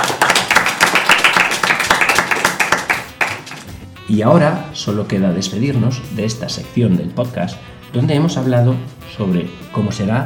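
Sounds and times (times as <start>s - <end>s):
audience applause: 0.0s - 3.7s
speech: 4.1s - 10.2s.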